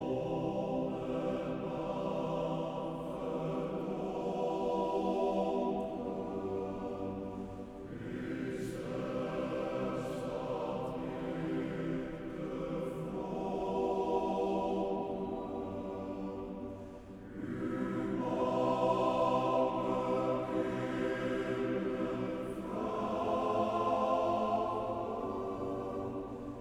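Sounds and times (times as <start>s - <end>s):
mixed choir singing: 0.0s - 26.5s.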